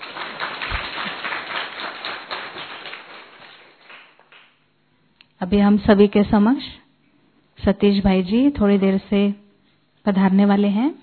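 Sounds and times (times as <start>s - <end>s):
crowd clapping: 0.0s - 4.6s
speech: 5.4s - 6.8s, 7.6s - 9.4s, 10.0s - 11.0s.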